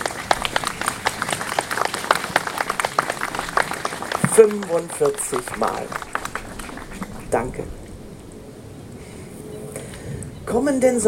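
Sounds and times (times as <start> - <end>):
audience applause: 0.0 - 7.9
speech: 4.4 - 6.1, 7.3 - 7.8, 10.5 - 11.0.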